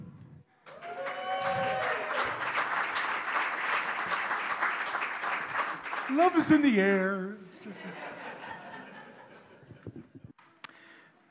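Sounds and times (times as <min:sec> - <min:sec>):
round of applause: 0:00.6 - 0:07.0
speech: 0:06.1 - 0:08.4
laughter: 0:07.5 - 0:10.4.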